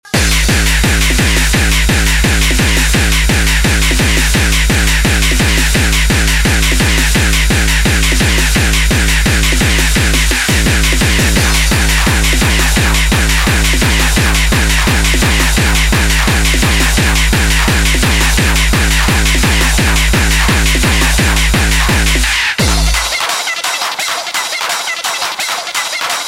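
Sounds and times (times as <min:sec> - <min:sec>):
drum machine: 0:00.0 - 0:26.2.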